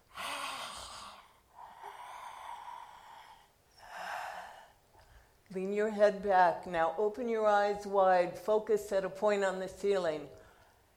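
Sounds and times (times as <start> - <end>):
hoarse breathing through a wide-open mouth with the tongue extended: 0.0 - 5.4
speech: 5.5 - 10.4.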